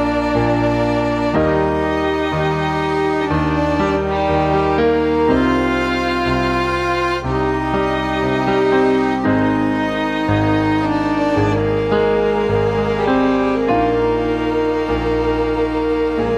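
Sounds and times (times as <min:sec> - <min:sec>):
sweet quartet playing: 0:00.0 - 0:16.3.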